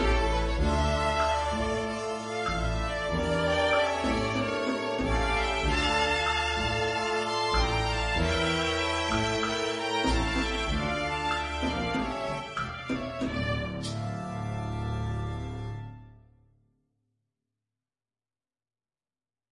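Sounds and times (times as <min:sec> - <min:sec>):
viola playing slow tango accompaniment: 0:00.0 - 0:16.0.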